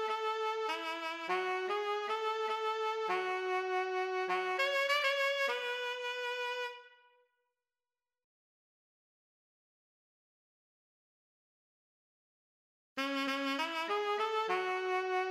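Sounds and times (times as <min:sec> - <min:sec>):
saxophone: 0:00.0 - 0:07.2, 0:13.0 - 0:15.2.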